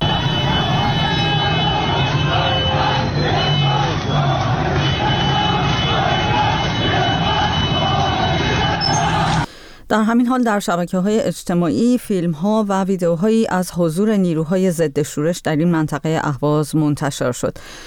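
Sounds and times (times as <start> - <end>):
street protest crowd: 0.0 - 9.5
speech: 9.9 - 17.8.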